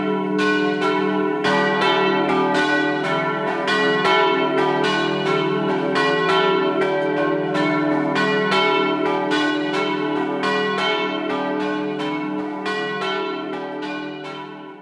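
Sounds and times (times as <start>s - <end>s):
bells in Capriva: 0.0s - 14.7s.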